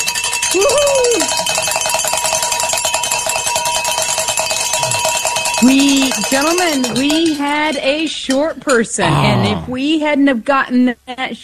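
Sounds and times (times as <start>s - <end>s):
bells being rung in celebration: 0.0s - 7.9s
speech: 0.5s - 1.7s, 5.6s - 11.4s.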